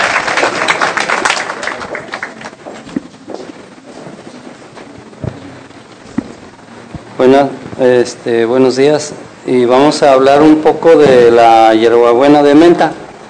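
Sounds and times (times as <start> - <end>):
audience applause: 0.0 - 2.9
speech: 7.2 - 13.0.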